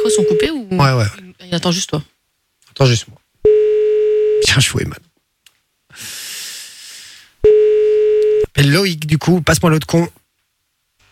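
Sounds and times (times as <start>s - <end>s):
ringback tone on an outgoing telephone call: 0.0s - 0.6s, 3.4s - 4.5s, 7.4s - 8.5s
speech: 0.1s - 2.2s, 2.8s - 3.6s, 4.4s - 5.0s, 8.5s - 10.2s
soft breathy hiss: 5.8s - 7.4s.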